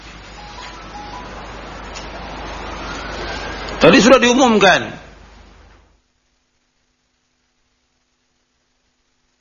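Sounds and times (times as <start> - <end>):
mobile phone ringtone going off: 0.4 - 1.6
speech: 3.8 - 5.0.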